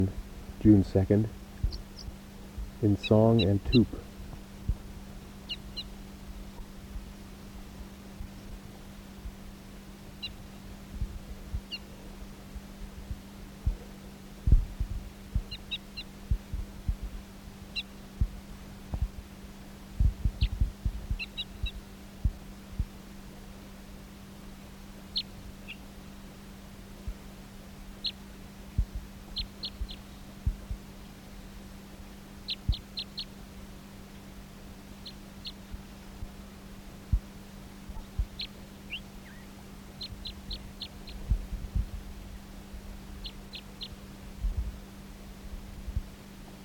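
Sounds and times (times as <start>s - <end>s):
speech: 0.0s - 1.4s, 2.8s - 4.0s
soft low thumps: 0.0s - 9.6s, 10.4s - 11.8s, 12.5s - 23.0s, 28.7s - 30.9s, 35.5s - 46.6s
steady low electrical hum: 0.0s - 46.6s
bird chirps: 1.6s - 2.2s, 5.5s - 5.9s, 20.3s - 20.6s, 21.2s - 21.8s, 25.1s - 25.8s, 29.3s - 30.3s, 32.4s - 33.4s, 35.0s - 35.6s, 38.0s - 41.3s, 43.2s - 44.0s.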